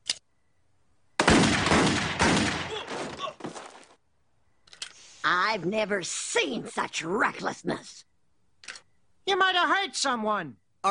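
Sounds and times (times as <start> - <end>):
cartoon character shooting at a television set: 1.2 - 2.8
crashing: 1.2 - 4.0
speech: 5.5 - 8.1, 9.3 - 10.8.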